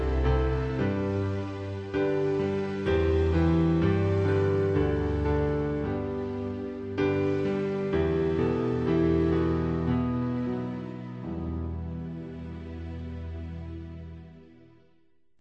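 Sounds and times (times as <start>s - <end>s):
instrumental hymn: 0.0s - 14.8s.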